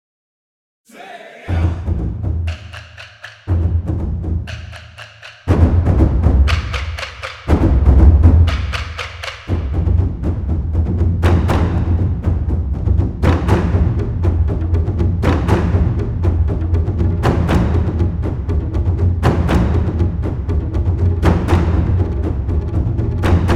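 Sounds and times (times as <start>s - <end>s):
taiko drums: 1.5s - 23.5s.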